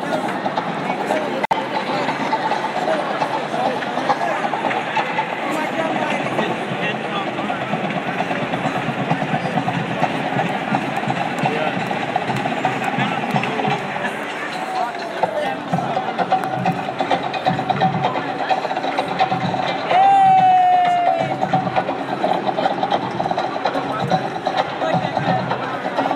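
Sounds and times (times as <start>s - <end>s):
drummers drumming to get the crowd pumping: 0.2s - 26.1s.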